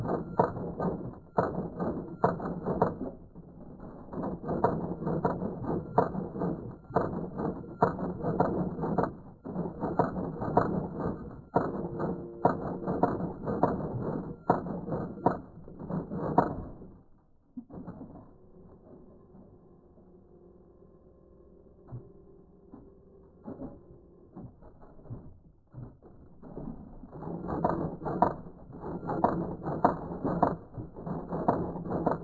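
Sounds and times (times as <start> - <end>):
typewriter: 0.0 - 17.0, 25.8 - 32.2.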